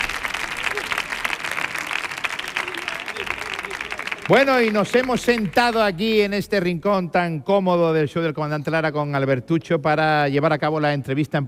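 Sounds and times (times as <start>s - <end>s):
audience applauding: 0.0s - 6.2s
speech: 4.3s - 11.4s.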